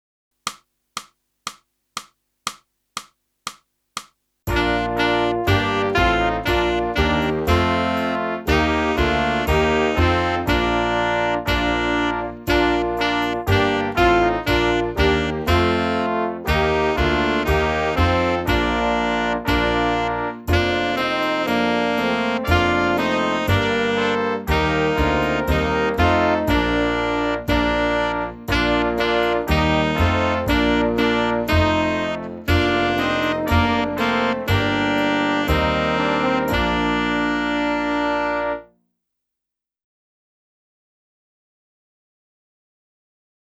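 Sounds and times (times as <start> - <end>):
saxophone: 4.5 - 38.7.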